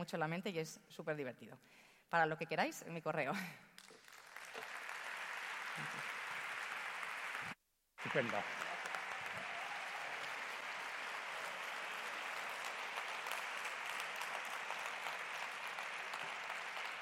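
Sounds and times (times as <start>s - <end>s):
speech: 0.0s - 4.0s, 5.8s - 6.1s, 8.1s - 8.6s
audience applause: 3.8s - 17.0s.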